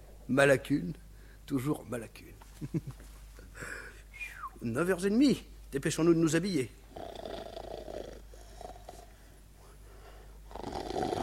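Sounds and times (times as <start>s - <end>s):
speech: 0.3s - 3.8s, 4.6s - 7.1s
snoring: 6.9s - 9.1s, 10.5s - 11.2s.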